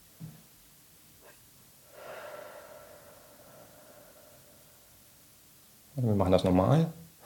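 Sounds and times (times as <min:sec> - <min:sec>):
sniffing inhale through the nose in a guided breathing exercise: 0:01.2 - 0:04.8
long steady airy exhale through the mouth: 0:01.8 - 0:05.3
speech: 0:06.0 - 0:07.0.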